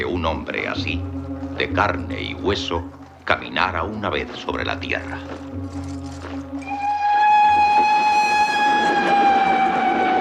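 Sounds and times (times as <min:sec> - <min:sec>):
speech: 0:00.0 - 0:06.3
steam train rumbling and rattling: 0:05.1 - 0:10.2
steam train whistle: 0:06.6 - 0:10.2.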